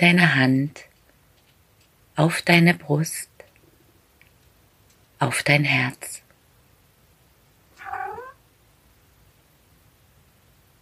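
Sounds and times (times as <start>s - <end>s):
speech: 0.0s - 0.9s, 2.2s - 3.3s, 5.2s - 6.2s
cat meowing: 7.8s - 8.4s.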